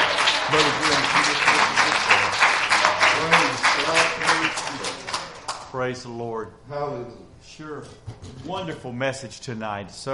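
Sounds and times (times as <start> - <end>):
audience clapping hands: 0.0 - 5.8
speech: 5.9 - 10.1.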